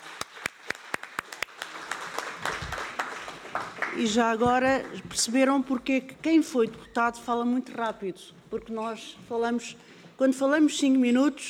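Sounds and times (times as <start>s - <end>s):
crowd applause: 0.0s - 4.0s
speech: 4.0s - 11.4s.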